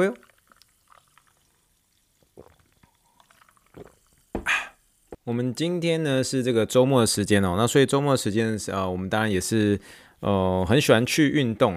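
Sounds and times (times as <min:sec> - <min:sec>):
speech: 0:00.0 - 0:00.3, 0:05.3 - 0:11.7
sparkling water poured for a toast: 0:00.0 - 0:05.2.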